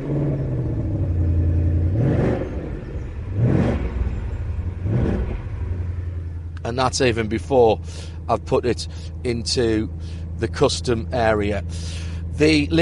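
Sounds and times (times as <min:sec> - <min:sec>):
5 litre normally aspirated V8 car engine crackling into life: 0:00.0 - 0:12.7
speech: 0:06.7 - 0:12.7.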